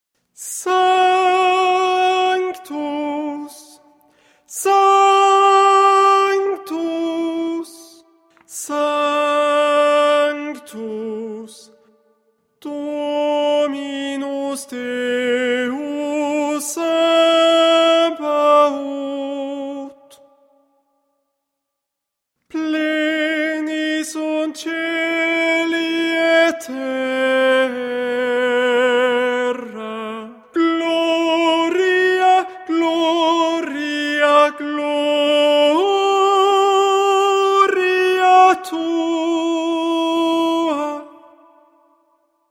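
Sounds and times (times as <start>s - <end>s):
tenor singing: 0.4s - 11.9s, 12.6s - 20.2s, 22.5s - 41.8s.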